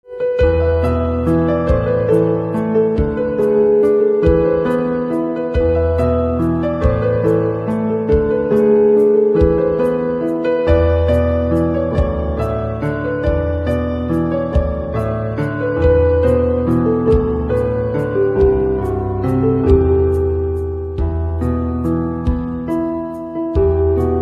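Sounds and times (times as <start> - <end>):
instrumental piano ringtone: 0.1 - 24.2.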